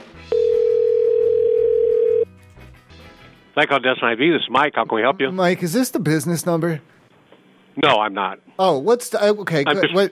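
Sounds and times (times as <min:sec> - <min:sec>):
telephone ringing tone: 0:00.3 - 0:02.3
speech: 0:03.6 - 0:07.0, 0:07.8 - 0:10.0.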